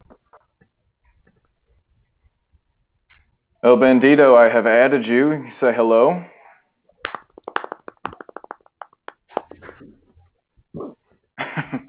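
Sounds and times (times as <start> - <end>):
speech: 3.6 - 6.3
hand claps: 7.0 - 9.6
thumps: 7.0 - 9.9.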